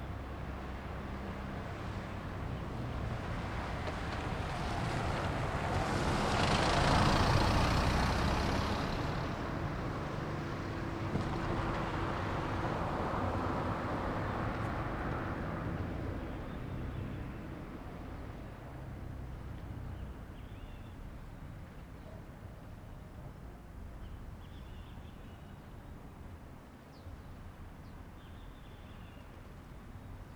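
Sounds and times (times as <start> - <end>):
cars at a UnB parking lot: 0.2 - 20.3.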